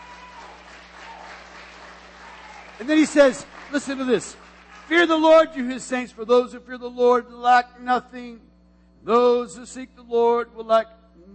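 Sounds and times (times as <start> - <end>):
audience hand clapping: 0.0 - 5.7
speech: 2.8 - 11.0.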